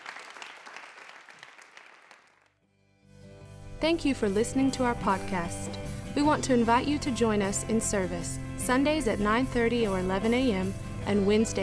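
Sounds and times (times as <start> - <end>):
audience clapping hands: 0.0 - 2.6
speech: 3.8 - 11.6.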